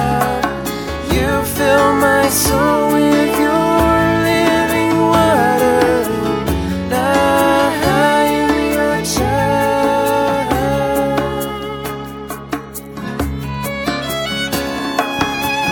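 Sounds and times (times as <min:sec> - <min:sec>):
Christian band playing: 0:00.0 - 0:15.6
improvisational violin playing with a Christian band: 0:11.3 - 0:15.6.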